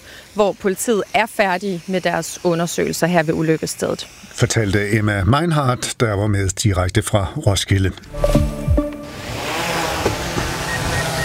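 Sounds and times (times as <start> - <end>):
speech: 0.4 - 8.4
agricultural spraying drone flying: 8.1 - 11.2.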